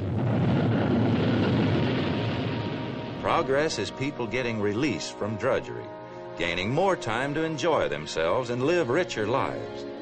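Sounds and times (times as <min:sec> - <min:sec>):
rocket roaring: 0:00.0 - 0:04.4
speech: 0:03.3 - 0:09.9.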